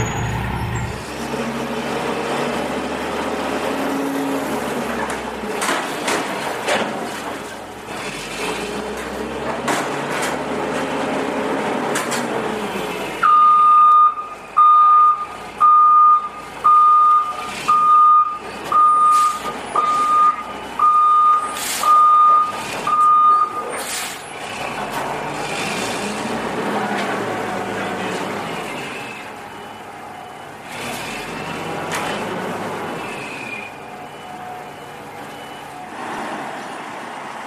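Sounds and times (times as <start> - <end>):
garbage truck rumbling engine: 0.0 - 37.4
reversing beep: 13.2 - 23.7, 29.1 - 30.6, 33.4 - 36.0.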